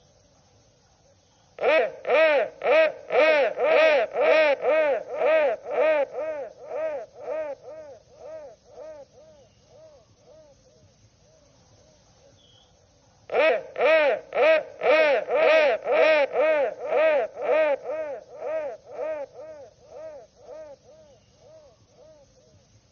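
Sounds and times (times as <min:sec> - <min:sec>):
crow calling harshly: 0:01.6 - 0:10.0, 0:13.3 - 0:21.7.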